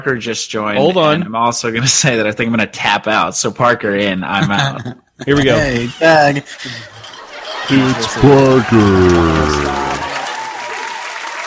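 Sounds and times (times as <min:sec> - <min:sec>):
speech: 0:00.0 - 0:06.9, 0:07.7 - 0:09.9
laughter: 0:04.3 - 0:10.7
applause sound effect: 0:07.7 - 0:11.4.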